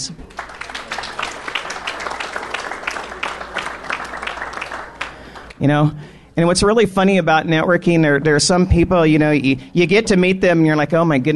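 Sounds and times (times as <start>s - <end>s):
speech: 0.0s - 0.4s, 5.6s - 11.3s
audience applause: 0.2s - 5.6s.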